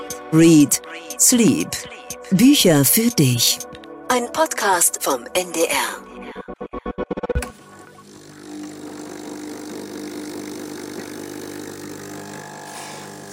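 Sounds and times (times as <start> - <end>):
speech: 0.3 - 6.1
espresso machine brewing: 7.5 - 13.3.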